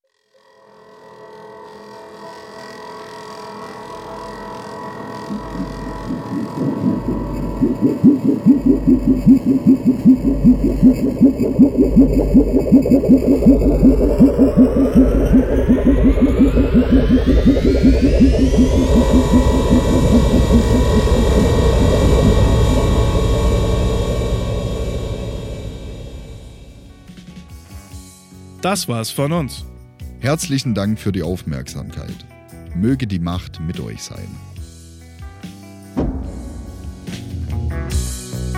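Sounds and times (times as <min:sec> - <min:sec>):
eerie rising tone: 0:02.9 - 0:27.5
synthesized alien spaceship throbbing low drone: 0:04.0 - 0:27.6
speech: 0:06.6 - 0:23.0, 0:28.6 - 0:34.5.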